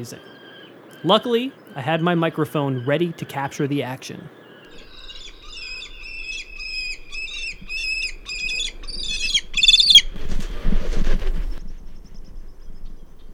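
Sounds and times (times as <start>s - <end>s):
speech: 0.0s - 0.3s, 1.0s - 4.4s
fledgling prairie falcons calling while talon locking: 0.0s - 10.1s
falcons flapping and scuffling: 9.6s - 11.6s.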